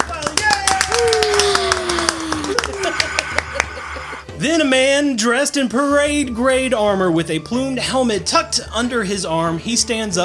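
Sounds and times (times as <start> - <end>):
crowd clapping: 0.0 - 4.2
crowd cheering: 0.0 - 4.3
laughter: 1.0 - 4.4
speech: 4.5 - 10.2.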